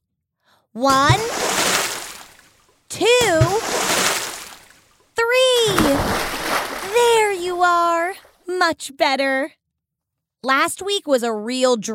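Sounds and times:
speech: 0.7s - 1.4s, 8.6s - 9.6s, 10.4s - 11.9s
splashing from big swimming strokes in water: 0.9s - 5.0s, 5.6s - 8.4s.

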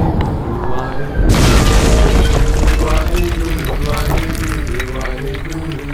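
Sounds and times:
boulder slamming into the ground: 1.2s - 5.9s.

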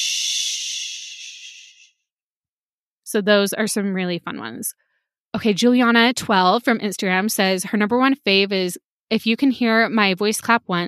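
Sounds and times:
voice making a shh hiss mimicking air escaping a flat tire: 0.0s - 1.9s
speech: 3.1s - 10.8s.

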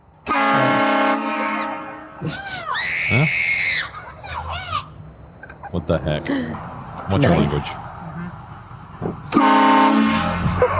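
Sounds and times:
loud train-style air horn: 0.2s - 2.2s, 9.3s - 10.7s
speech: 2.2s - 3.5s, 5.9s - 7.8s.

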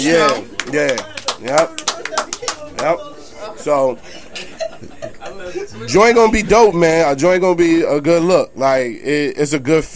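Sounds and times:
speech: 0.0s - 1.8s, 2.7s - 9.9s
audience clapping: 0.0s - 3.0s
laughter: 2.0s - 7.0s.

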